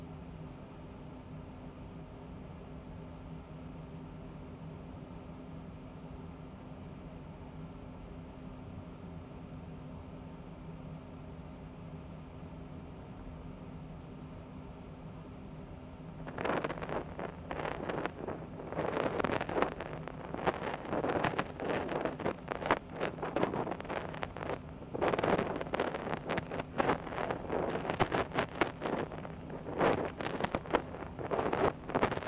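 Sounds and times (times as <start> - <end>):
ear cleaning with rubber spiral and spatula ear picks in right ear: 16.3 - 32.2.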